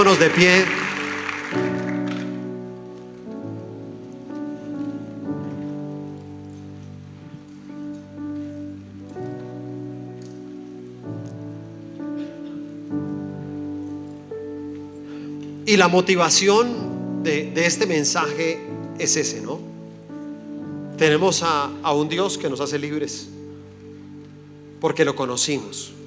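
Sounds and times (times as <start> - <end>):
speech: 0.0 - 0.8, 1.5 - 1.9, 15.7 - 19.7, 21.0 - 23.4, 24.8 - 26.0
audience applause: 0.0 - 2.5
loud sustained keyboard chords: 0.0 - 26.0.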